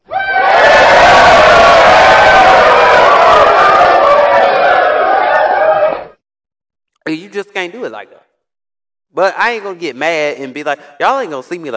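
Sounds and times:
audience cheering and shouting: 0.0 - 6.2
speech: 7.6 - 8.2, 9.1 - 11.7.

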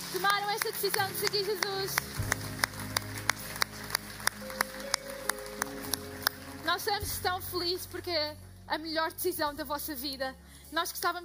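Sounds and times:
church audience clapping: 0.0 - 7.7
speech: 0.1 - 2.4, 6.7 - 11.2
soft sustained musical tones: 1.0 - 10.8.

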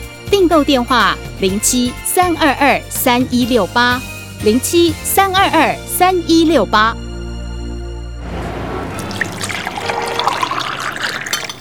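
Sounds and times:
speech: 0.4 - 7.0
tea pouring into a cup: 8.9 - 11.5.

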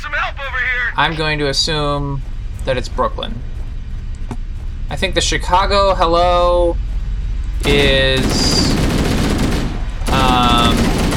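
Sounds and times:
speech: 0.1 - 3.5, 4.9 - 6.8, 7.6 - 8.7
loaded machine gun firing: 7.6 - 11.1.

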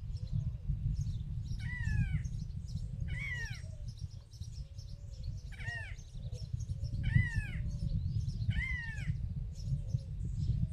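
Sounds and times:
small birds chirping in the countryside: 0.0 - 10.7
wind in the countryside: 0.0 - 10.7.

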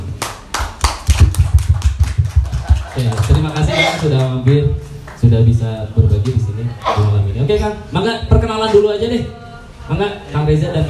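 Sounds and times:
audience applause for the guest speakers: 0.2 - 4.4
speech: 4.0 - 10.8.

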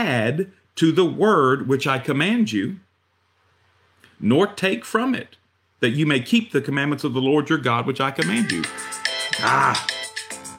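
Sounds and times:
speech: 0.0 - 2.8, 4.2 - 10.0
timer alarm going off: 8.2 - 10.5.

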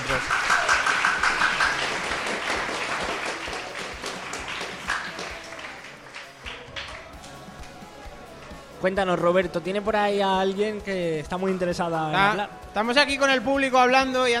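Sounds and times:
audience applause: 0.0 - 8.6
speech: 8.8 - 14.3.

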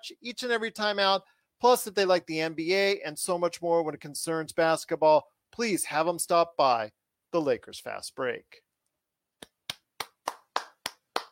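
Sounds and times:
speech: 0.0 - 8.6
clapping: 9.4 - 11.3.

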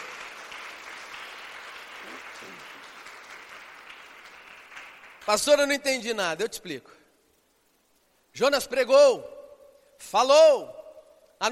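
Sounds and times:
audience clapping: 0.0 - 5.5
speech: 2.0 - 2.9, 5.3 - 7.0, 8.4 - 9.4, 10.0 - 10.8.

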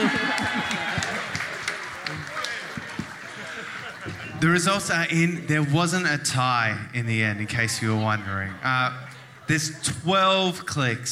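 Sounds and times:
audience clapping: 0.0 - 4.6
laughter: 0.0 - 5.7, 7.7 - 9.8
speech: 4.4 - 11.1.

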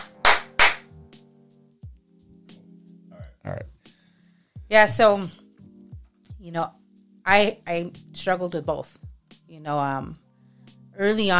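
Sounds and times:
hand clap: 0.0 - 0.9
speech: 4.7 - 5.4, 6.4 - 9.0, 9.6 - 10.2, 11.0 - 11.3.

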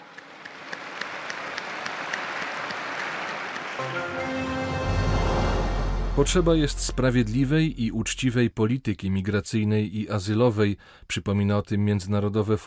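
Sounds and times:
crowd applause for newly beatified: 0.0 - 5.4
speech: 3.8 - 4.9, 6.2 - 12.6.

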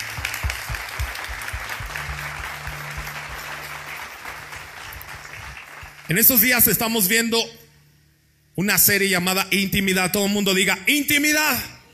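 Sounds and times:
audience applause: 0.0 - 6.5
speech: 6.1 - 7.6, 8.6 - 11.8.

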